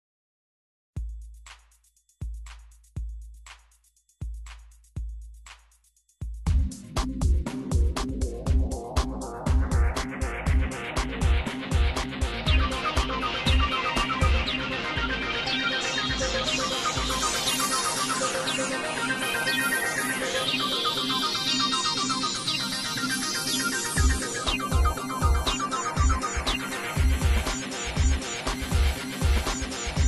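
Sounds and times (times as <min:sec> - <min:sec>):
game music: 0:06.6 - 0:30.0.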